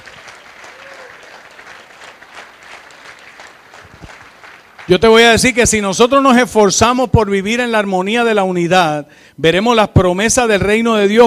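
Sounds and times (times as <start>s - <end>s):
audience applause: 0.0s - 5.0s
speech: 4.9s - 11.2s.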